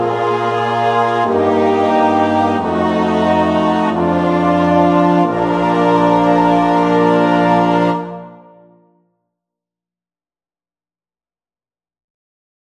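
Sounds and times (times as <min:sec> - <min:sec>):
slow chromatic chorale: 0:00.0 - 0:08.9.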